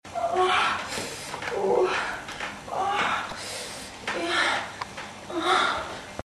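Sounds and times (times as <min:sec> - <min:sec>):
person moaning during sex: 0:00.1 - 0:00.9, 0:01.5 - 0:03.4, 0:04.1 - 0:06.0.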